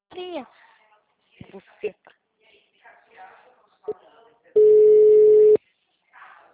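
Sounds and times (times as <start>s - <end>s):
speech: 0.4s - 0.6s, 1.4s - 2.1s
telephone tone after a dropped call: 4.6s - 5.6s.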